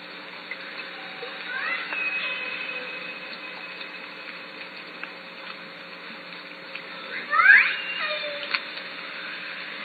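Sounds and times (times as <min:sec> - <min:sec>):
Southern Resident killer whale pulsed calls: 0:00.5 - 0:05.0, 0:07.0 - 0:09.7.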